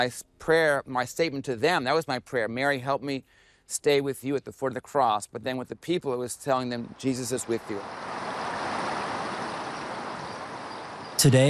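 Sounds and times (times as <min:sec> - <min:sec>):
speech: 0:00.0 - 0:08.2, 0:11.2 - 0:11.4
water flowing beneath the Pentagon memorial benches: 0:06.9 - 0:11.2.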